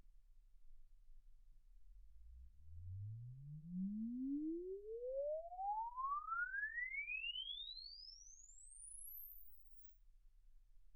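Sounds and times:
exponential sine sweep from 10 Hz to 24 kHz: 2.8s - 9.9s.

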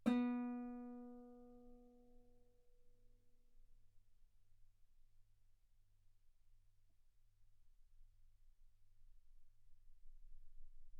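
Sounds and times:
guitar B3 note on B string played fortissimo: 0.0s - 1.7s.

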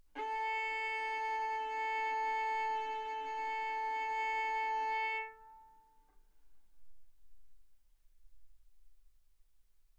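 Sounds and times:
violin bowed arco notes: 0.2s - 5.9s.

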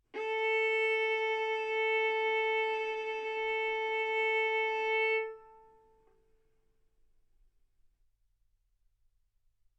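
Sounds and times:
violin bowed mezzo-forte on the A string, A4 and B4: 0.2s - 5.9s.

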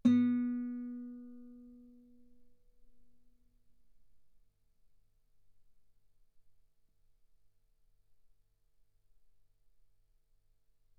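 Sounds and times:
guitar note B3: 0.0s - 1.9s.

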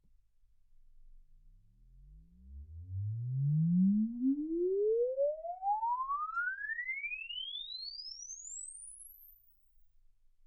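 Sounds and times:
exponential sine sweep from 10 Hz to 24 kHz: 2.0s - 9.7s.

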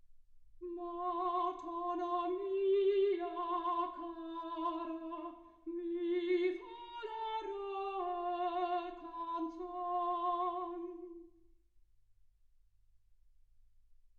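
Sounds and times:
soprano singing: 0.6s - 11.4s.

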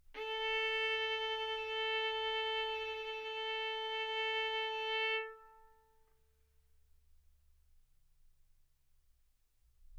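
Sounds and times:
violin arco on A string: 0.0s - 6.1s.

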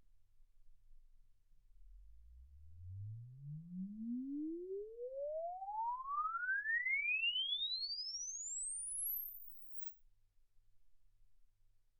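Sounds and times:
exponential sine sweep from 10 Hz to 24 kHz: 2.3s - 9.9s.

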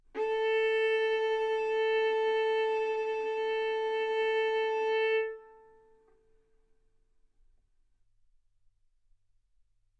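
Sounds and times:
violin bowed mezzo-forte on the A string, A4 and B4: 0.1s - 6.1s.

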